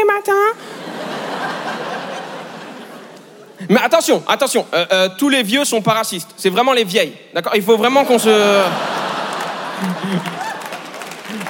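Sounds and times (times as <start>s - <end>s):
speech: 0.2s - 0.8s, 3.7s - 8.9s, 9.8s - 10.4s
laughter: 0.6s - 3.7s, 7.8s - 11.4s
scattered audience clapping: 8.7s - 11.4s.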